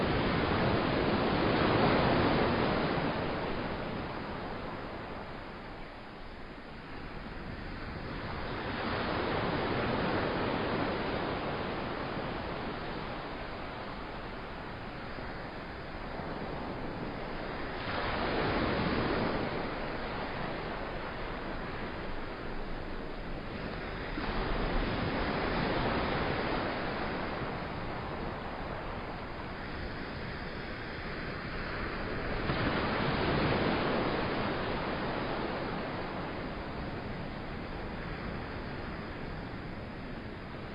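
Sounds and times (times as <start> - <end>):
gentle ocean waves: 0.0 - 40.7.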